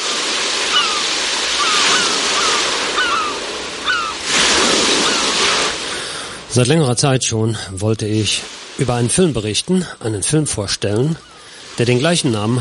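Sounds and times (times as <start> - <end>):
ocean waves: 0.0 - 12.6
seagull cries: 0.5 - 5.8, 10.0 - 11.7
speech: 6.6 - 12.6.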